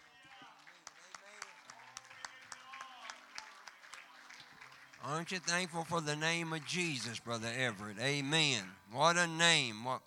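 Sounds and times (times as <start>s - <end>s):
audience cheering and clapping: 0.0s - 7.4s
speech: 5.0s - 10.0s.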